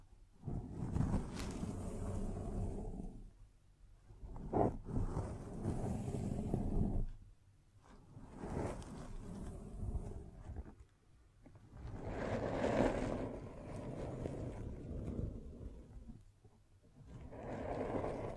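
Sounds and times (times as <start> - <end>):
scratching and tracing strokes: 0.4 - 3.2, 4.3 - 7.1, 7.9 - 10.7, 11.8 - 16.2, 17.1 - 18.3.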